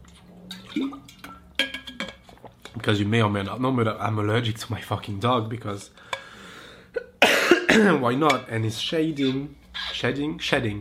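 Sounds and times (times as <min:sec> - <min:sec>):
person gulping a drink: 0:00.4 - 0:02.8
glass or bottle set down: 0:00.5 - 0:02.3
speech: 0:00.7 - 0:01.2, 0:02.8 - 0:06.0, 0:07.8 - 0:10.7.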